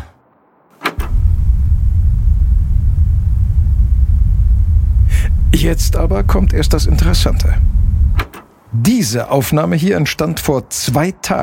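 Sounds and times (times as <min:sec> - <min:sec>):
extremely deep drone sped up to audible frequency: 0:01.0 - 0:08.3
speech: 0:05.6 - 0:07.8, 0:08.8 - 0:11.4.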